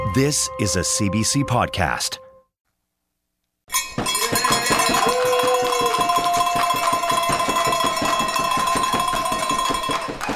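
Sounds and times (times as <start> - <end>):
speech: 0.1 - 2.2
bell ringing: 3.7 - 10.2.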